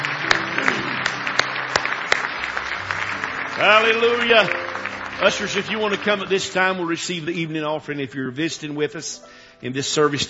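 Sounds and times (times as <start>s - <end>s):
audience applause: 0.0s - 7.4s
speech: 3.6s - 4.6s, 5.2s - 10.2s.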